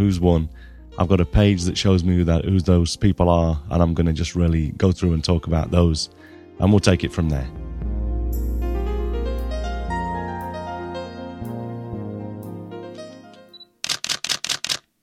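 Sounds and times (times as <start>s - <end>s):
speech: 0.0s - 7.6s
sustained tonal music: 0.0s - 13.6s
computer mouse clicking: 13.8s - 14.9s.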